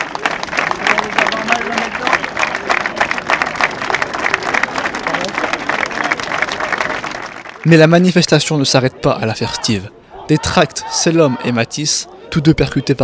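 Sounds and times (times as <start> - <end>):
crowd applause at a demonstration: 0.0 - 7.9
speech: 7.6 - 13.0.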